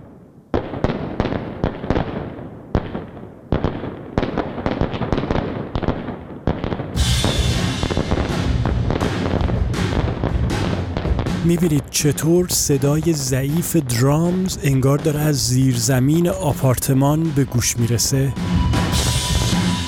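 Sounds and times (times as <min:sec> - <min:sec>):
fireworks crackling and popping: 0:00.0 - 0:18.4
speech: 0:11.5 - 0:19.1.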